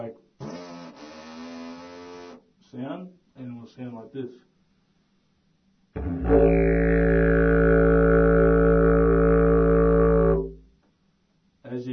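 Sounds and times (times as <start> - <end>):
didgeridoo: 6.0 - 10.7.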